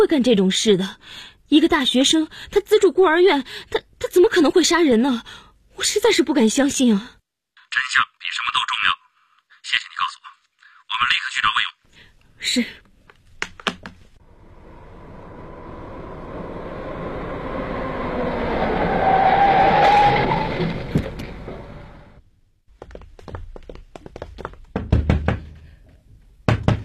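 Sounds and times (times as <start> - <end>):
speech: 0.0 - 9.0, 11.0 - 11.8, 12.4 - 12.9
train rumbling: 14.2 - 22.2
sharp hard knocks on a door: 24.4 - 25.7, 26.4 - 26.8.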